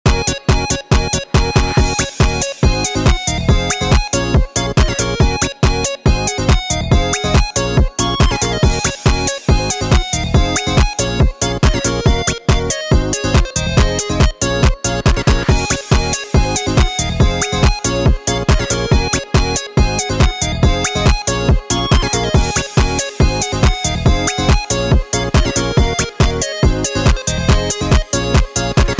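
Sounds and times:
pluggnb beat: 0.1 - 28.9.

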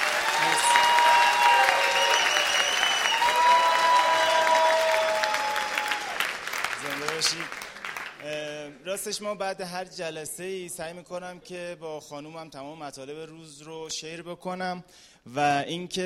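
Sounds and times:
audience clapping at a coaching seminar: 0.0 - 8.7
speech: 8.9 - 16.0.

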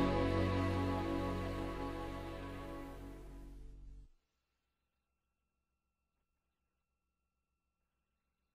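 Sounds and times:
waltz music: 0.0 - 4.0.

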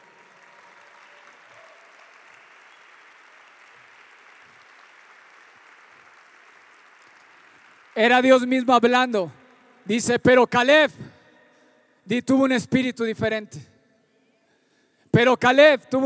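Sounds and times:
audience applauding loudly: 0.0 - 9.9
speech: 8.0 - 11.1, 12.0 - 13.7, 15.2 - 16.0.

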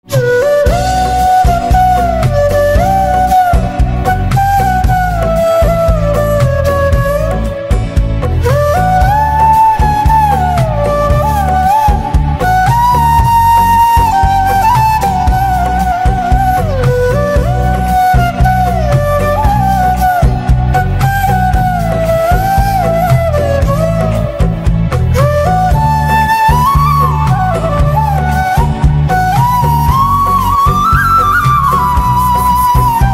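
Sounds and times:
flute: 0.0 - 33.1.

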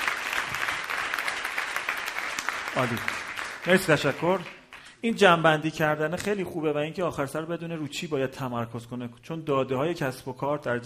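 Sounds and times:
audience applause at a business seminar: 0.0 - 4.9
speech: 2.8 - 10.8.

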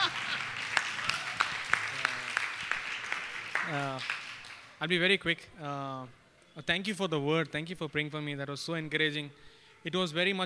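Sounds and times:
audience clapping loudly: 0.0 - 4.9
speech: 3.7 - 4.2, 4.8 - 10.4.

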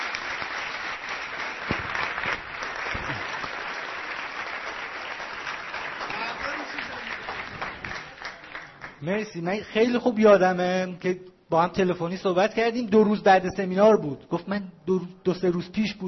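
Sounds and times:
audience applauding: 0.0 - 9.0
speech: 9.0 - 16.0.

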